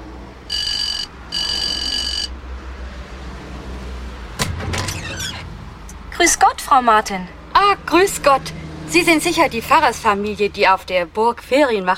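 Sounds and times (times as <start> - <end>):
electronic doorbell buzzing: 0.5 - 2.4
speech: 6.2 - 11.9.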